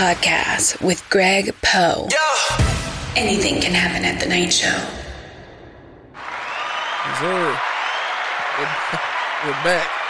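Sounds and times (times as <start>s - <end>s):
speech: 0.0s - 5.0s, 7.1s - 7.7s, 8.6s - 10.0s
applause: 6.2s - 10.0s.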